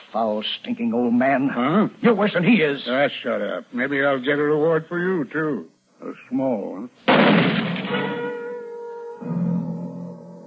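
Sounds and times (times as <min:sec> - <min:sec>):
speech: 0:00.1 - 0:08.2
gunshot: 0:07.1 - 0:08.3
metallic ringing: 0:07.7 - 0:10.4.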